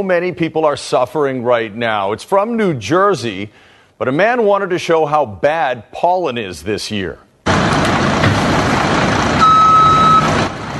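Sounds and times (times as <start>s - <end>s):
speech: 0.0s - 7.3s
backhoe engine rumbling: 7.5s - 10.7s
high steady warning beep: 9.4s - 10.3s.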